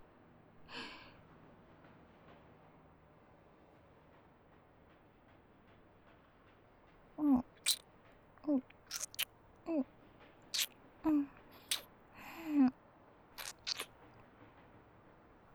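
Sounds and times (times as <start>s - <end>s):
kissing: 7.2s - 7.8s, 8.5s - 9.8s, 10.6s - 11.8s, 13.4s - 13.9s.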